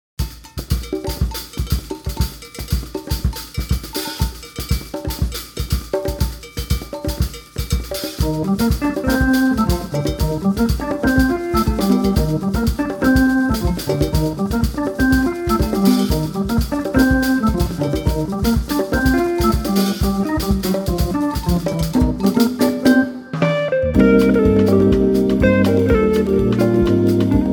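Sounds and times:
samba music: 0.2s - 27.5s.

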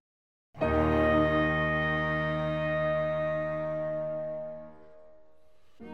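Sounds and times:
trio playing: 0.6s - 4.8s.

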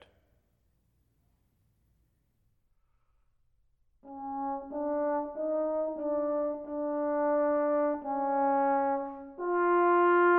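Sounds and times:
orchestral trombone excerpt from a symphony in D minor: 4.1s - 10.3s.

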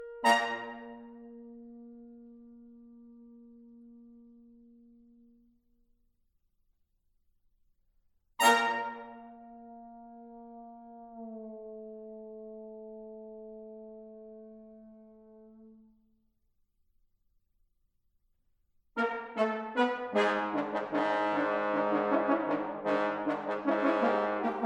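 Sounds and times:
brass quintet: 0.0s - 5.4s, 8.4s - 16.0s, 19.0s - 24.6s.

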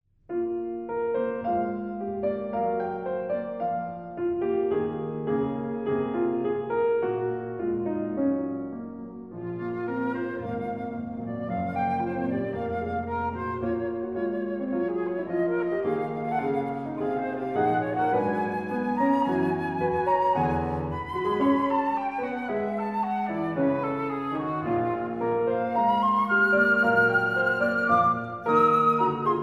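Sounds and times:
flute and piano sonata, cheerful movement: 0.3s - 29.4s.

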